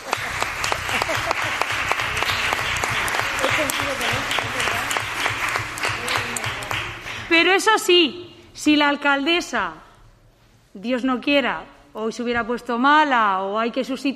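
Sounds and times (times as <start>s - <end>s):
audience applause: 0.0s - 7.3s
speech: 7.4s - 9.8s, 10.8s - 14.1s.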